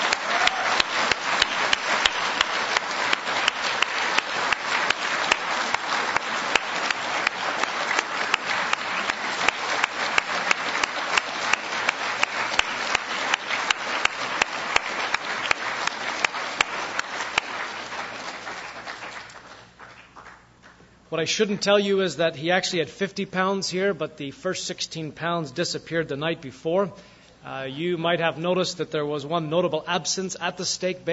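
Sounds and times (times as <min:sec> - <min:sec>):
audience applause: 0:00.0 - 0:20.5
speech: 0:21.2 - 0:31.1.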